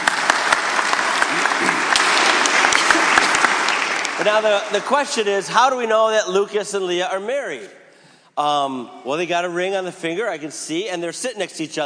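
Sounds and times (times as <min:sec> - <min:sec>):
audience applause: 0:00.0 - 0:05.3
speech: 0:04.2 - 0:07.8, 0:08.4 - 0:11.8.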